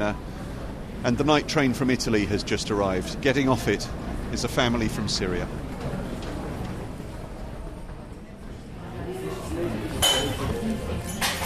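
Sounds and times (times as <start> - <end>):
speech: 0.0 - 0.3, 1.0 - 5.6
murmur of voices in a busy cafe: 0.0 - 11.4
dishes and cutlery clinking in a cafe: 9.9 - 11.4.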